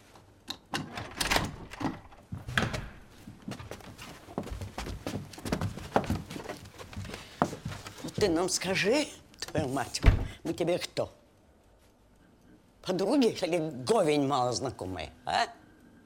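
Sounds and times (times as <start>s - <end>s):
door opening: 0.7s - 3.8s
speech: 8.2s - 11.2s, 12.9s - 15.6s.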